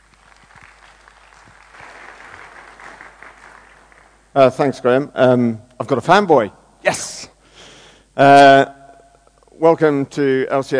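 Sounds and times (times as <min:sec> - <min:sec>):
conference audience applause welcoming a speaker: 0:00.0 - 0:04.3
speech: 0:04.4 - 0:07.2, 0:08.2 - 0:08.7, 0:09.6 - 0:10.7.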